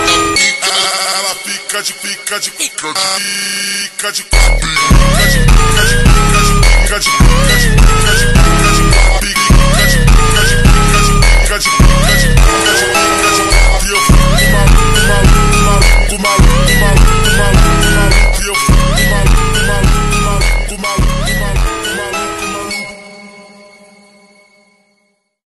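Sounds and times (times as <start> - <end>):
ultra slowed high bass boosted montagem music: 4.4 - 23.0.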